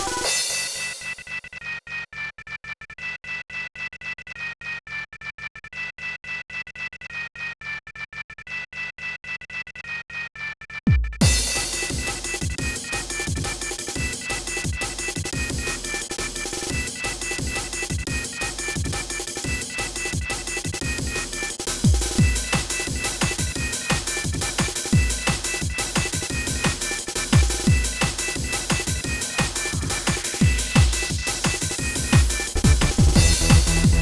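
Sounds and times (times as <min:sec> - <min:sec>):
fast music: 0:00.0 - 0:01.4, 0:11.2 - 0:33.9.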